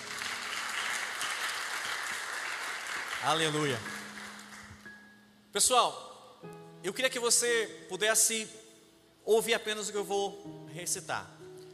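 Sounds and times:
round of applause: 0.0s - 4.9s
speech: 3.2s - 4.0s, 5.5s - 8.7s, 9.3s - 11.4s.

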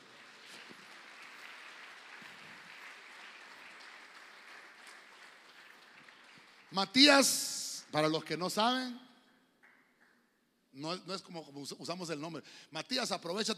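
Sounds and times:
audience applauding: 0.0s - 7.8s
speech: 6.7s - 9.1s, 10.8s - 13.5s.

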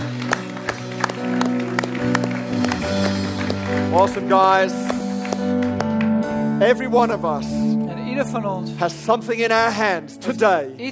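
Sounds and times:
applause: 0.0s - 6.2s
speech: 3.9s - 4.8s, 6.6s - 10.8s.

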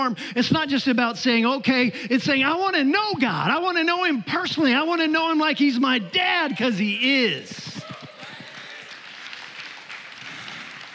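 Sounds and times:
speech: 0.0s - 7.7s
audience clapping: 7.6s - 10.9s.

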